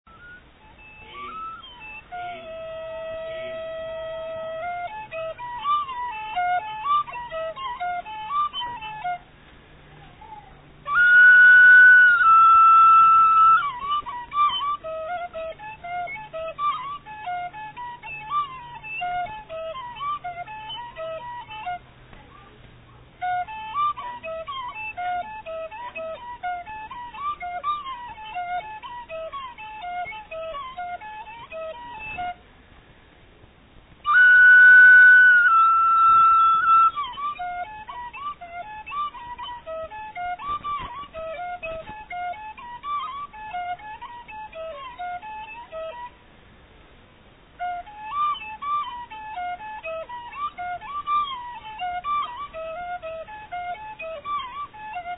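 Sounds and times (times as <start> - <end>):
folk song played on flute: 0.1 - 32.5, 34.0 - 46.3, 47.4 - 55.1.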